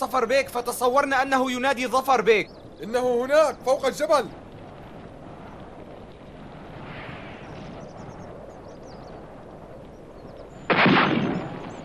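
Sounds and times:
speech: 0.0 - 4.4
gunfire: 10.7 - 11.8.

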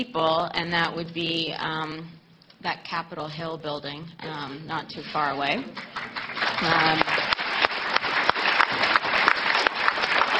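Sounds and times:
speech: 0.0 - 7.3
audience applause: 5.7 - 10.3.

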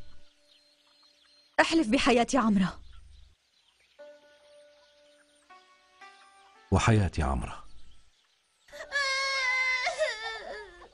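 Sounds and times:
speech: 1.6 - 2.8, 6.8 - 7.6
woman crying: 8.7 - 10.9.

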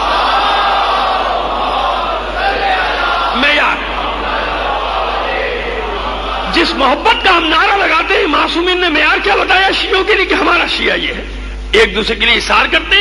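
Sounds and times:
congregation loudly reciting salawat in unison at a majlis: 0.0 - 7.1
speech: 6.8 - 13.0.

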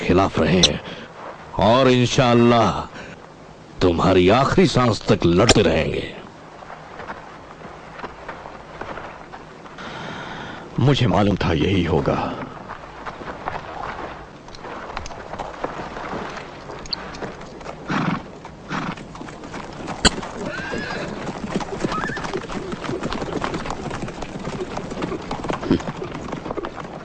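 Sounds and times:
horses galloping: 0.0 - 9.8, 10.6 - 27.0
speech: 0.1 - 3.1, 3.8 - 6.2, 10.8 - 12.4
horses neighing: 16.6 - 27.0.

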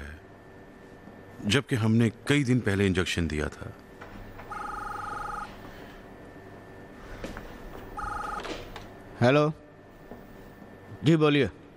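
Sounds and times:
speech: 1.4 - 3.8, 9.2 - 9.6, 11.0 - 11.6
telephone ringing with warbling electronic tone: 4.3 - 6.0, 7.8 - 8.9.

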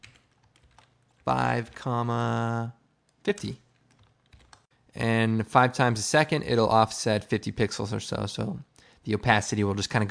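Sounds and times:
typing on a computer keyboard: 0.0 - 2.2, 3.0 - 4.7
speech: 1.2 - 3.6, 5.0 - 10.0.

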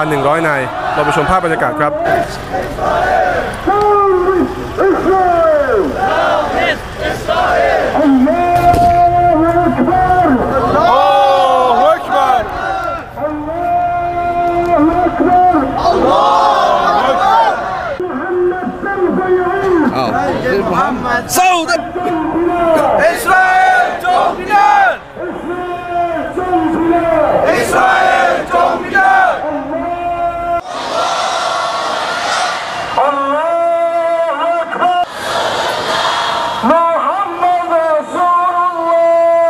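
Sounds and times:
speech: 0.0 - 5.2
crowd of Muslim protest marchers chanting slogans outside the Israeli embassy in Thailand: 0.0 - 18.0, 21.6 - 33.0, 35.0 - 36.9
dense murmur of protest crowd voices: 0.0 - 39.4.

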